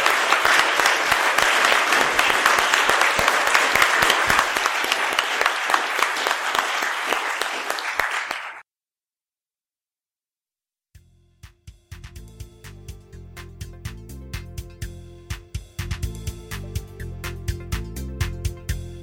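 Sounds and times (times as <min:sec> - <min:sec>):
audience applause: 0:00.0 - 0:08.6.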